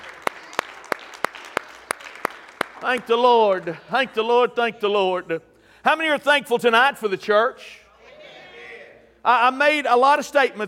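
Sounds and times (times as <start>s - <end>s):
audience clapping hands in praise: 0.0s - 3.9s
speech: 2.8s - 7.8s, 9.2s - 10.6s.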